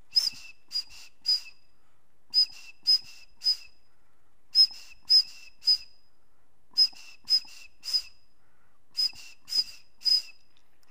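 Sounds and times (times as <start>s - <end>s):
bone quena flute: 0.1s - 1.6s, 2.3s - 3.8s, 4.5s - 6.0s, 6.7s - 8.2s, 8.9s - 10.5s.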